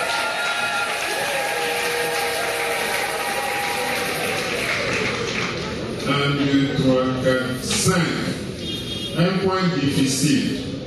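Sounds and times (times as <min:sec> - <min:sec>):
audience applause: 0:00.0 - 0:06.0
speech: 0:06.1 - 0:08.2, 0:09.2 - 0:10.8.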